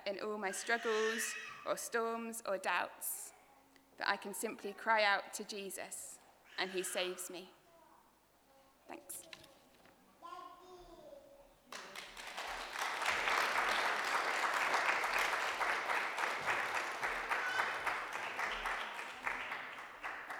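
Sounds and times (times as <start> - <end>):
speech: 0.0 - 3.3, 4.0 - 7.6, 8.9 - 9.3
audience applause: 11.7 - 20.3.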